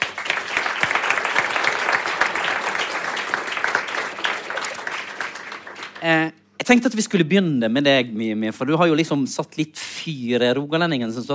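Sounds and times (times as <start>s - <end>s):
audience applause for panel guests: 0.0s - 6.2s
speech: 6.0s - 11.3s.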